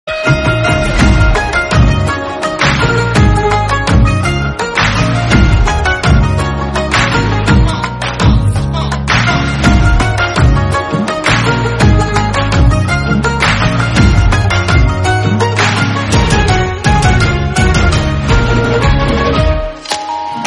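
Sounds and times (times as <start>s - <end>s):
instrumental background music: 0.1s - 20.4s.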